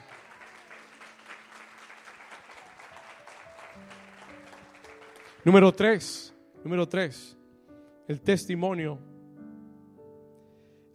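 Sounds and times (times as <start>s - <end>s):
audience applause: 0.0s - 5.5s
speech: 5.4s - 7.4s, 8.1s - 9.1s.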